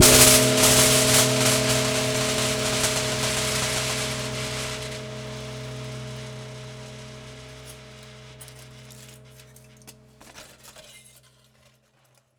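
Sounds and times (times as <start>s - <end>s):
prepared drums: 0.0s - 10.6s.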